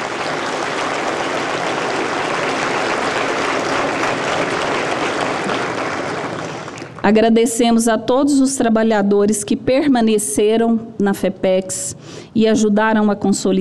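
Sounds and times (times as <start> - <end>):
audience applause: 0.0 - 7.1
speech: 7.1 - 13.6.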